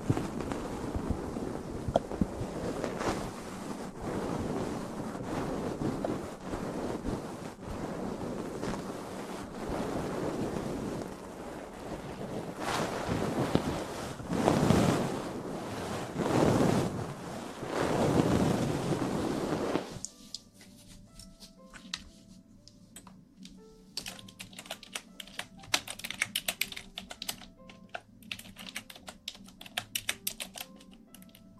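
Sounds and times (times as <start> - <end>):
ear massage muffled rubbing with soft crackles: 0.0 - 31.5
ear cleaning clicks and light taps: 20.0 - 31.5.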